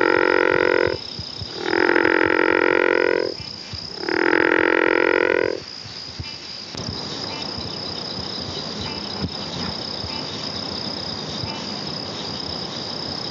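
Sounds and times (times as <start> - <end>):
frog croaking in a buzzy pulsed drone: 0.0 - 10.4.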